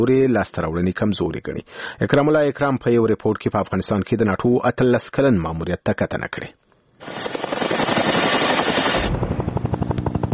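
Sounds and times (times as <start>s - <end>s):
speech: 0.0s - 7.4s
NATO helicopter flying over Afghanistan: 7.0s - 10.3s.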